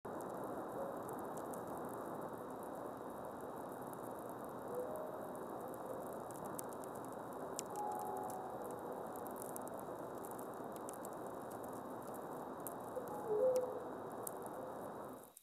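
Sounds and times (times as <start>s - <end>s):
radio: 0.2s - 15.2s.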